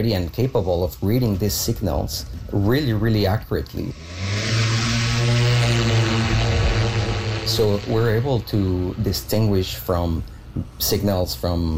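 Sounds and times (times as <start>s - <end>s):
speech: 0.0s - 4.6s, 7.5s - 11.7s
aircraft engine drone as a plane takes off for a magnetic survey flight: 3.8s - 9.6s.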